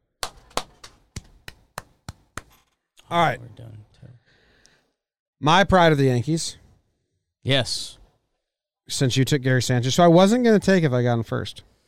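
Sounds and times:
hand clapping: 0.2 - 2.7
speech: 3.1 - 4.1, 5.4 - 6.6, 7.4 - 8.0, 8.9 - 11.7.

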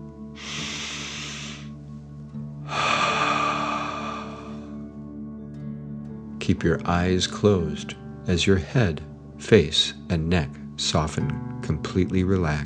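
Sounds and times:
deep breath in and out: 0.4 - 1.8, 2.7 - 4.9
speech: 6.5 - 12.6.

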